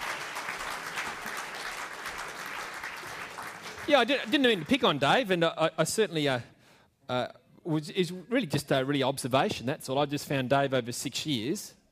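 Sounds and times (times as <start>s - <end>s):
audience applause: 0.0s - 5.0s
speech: 3.9s - 6.5s, 7.1s - 11.8s.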